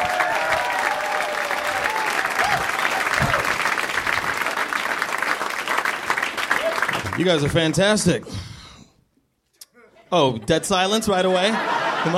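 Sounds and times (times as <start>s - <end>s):
audience applause at a stand-up comedy show: 0.0s - 8.0s
speech: 7.2s - 8.5s, 10.1s - 12.1s
laughter: 9.7s - 12.1s.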